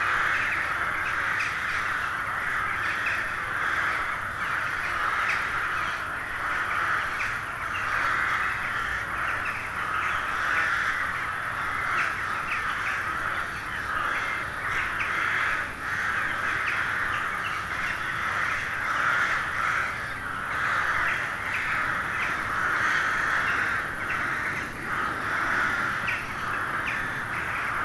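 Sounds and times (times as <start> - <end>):
carrion crows cawing chorus: 0.0 - 27.8.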